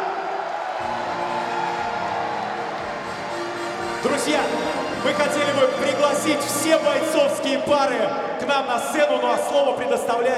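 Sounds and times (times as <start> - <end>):
audience applause and cheering: 0.0 - 7.2
speech: 0.8 - 1.1, 4.0 - 10.3.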